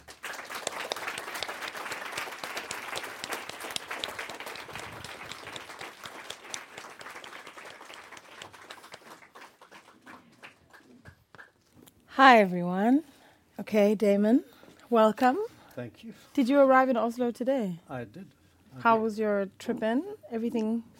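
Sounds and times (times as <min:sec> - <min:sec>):
audience applause welcoming two guests to an on-stage conversation in Oslo: 0:00.0 - 0:11.5
speech: 0:12.2 - 0:13.1, 0:13.7 - 0:20.9.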